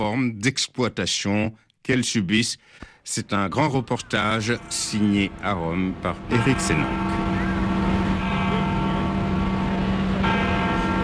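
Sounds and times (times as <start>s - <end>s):
speech: 0.1s - 7.7s
large basilica bell tolling the hour: 3.8s - 11.0s.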